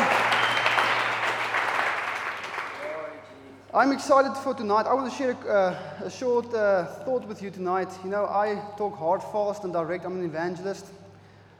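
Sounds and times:
crowd clapping: 0.0s - 3.2s
speech: 3.8s - 11.0s.

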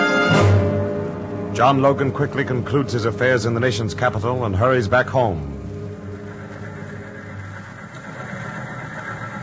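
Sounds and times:
train pulling into a station with deep engine rumble: 0.2s - 9.4s
speech: 1.6s - 5.6s
laughter: 5.9s - 9.4s.

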